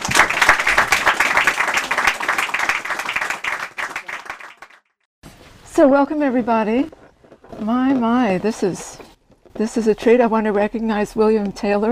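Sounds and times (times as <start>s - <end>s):
audience applause welcoming an author: 0.0s - 4.9s
speech: 5.8s - 7.0s, 7.6s - 9.0s, 9.6s - 11.8s.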